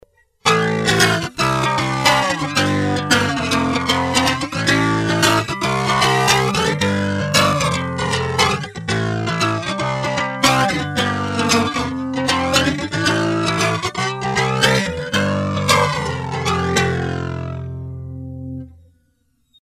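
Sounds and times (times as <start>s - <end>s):
guitar riff in G: 0.4s - 18.9s.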